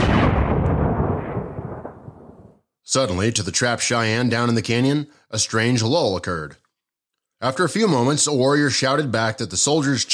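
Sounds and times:
buffalo rifle gunshot: 0.0s - 2.6s
speech: 2.9s - 6.6s, 7.4s - 10.1s.

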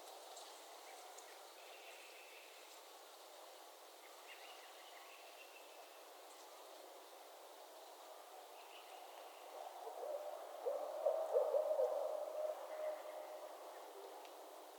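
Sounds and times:
barred owl calling: 9.5s - 14.1s.

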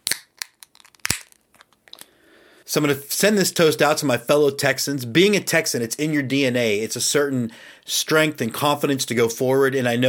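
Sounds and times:
can of Airmail popped open: 0.0s - 2.1s
speech: 2.7s - 10.0s.

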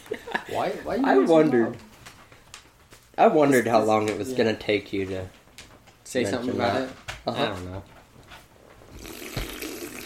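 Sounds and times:
speech: 0.6s - 1.9s, 3.2s - 5.4s, 6.1s - 8.0s
slurping sip of a drink from a can: 9.0s - 10.0s.

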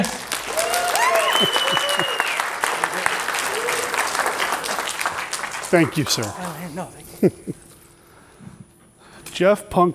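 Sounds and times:
audience applause: 0.0s - 6.6s
whoops and cheers: 0.4s - 2.5s, 3.4s - 4.0s
speech: 5.7s - 7.6s, 9.4s - 9.9s.

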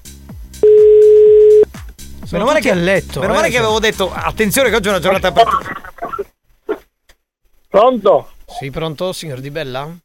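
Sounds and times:
music: 0.0s - 5.9s
telephone ringing tone of outgoing call: 0.6s - 1.7s
speech: 2.3s - 5.8s, 7.8s - 10.0s.

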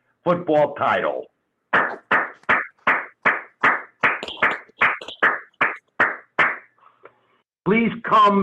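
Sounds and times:
speech: 0.2s - 2.0s, 7.7s - 8.4s
sharp hand claps: 1.7s - 6.7s.

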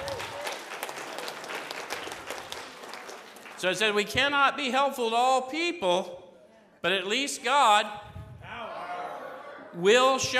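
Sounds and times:
crowd applauding: 0.0s - 4.1s
speech: 3.6s - 6.2s, 6.8s - 8.0s, 9.8s - 10.3s.

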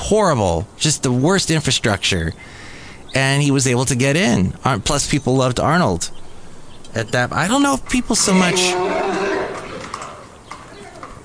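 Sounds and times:
speech: 0.1s - 6.2s, 6.9s - 9.5s
horse vocalizing: 8.2s - 11.1s.

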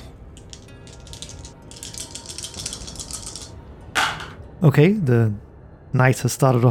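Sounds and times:
dice rattling and clattering: 0.4s - 3.6s
speech: 4.6s - 6.6s.

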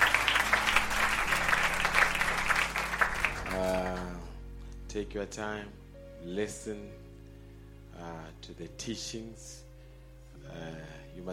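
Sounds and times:
audience applause: 0.0s - 4.1s
low sustained musical tone: 0.0s - 11.3s
organ-like chord: 0.0s - 11.3s
speech: 5.0s - 7.1s, 8.0s - 9.6s, 10.4s - 11.3s.

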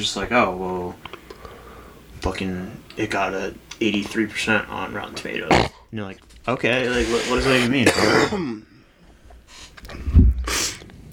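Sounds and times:
speech: 0.0s - 1.2s, 2.2s - 8.7s
person coughing into microphone: 7.0s - 8.6s.

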